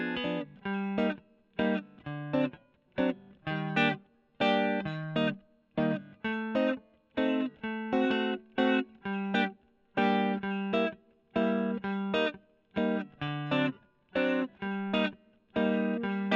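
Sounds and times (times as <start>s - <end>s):
electric guitar recorded with Gefell microphone: 0.0s - 16.3s.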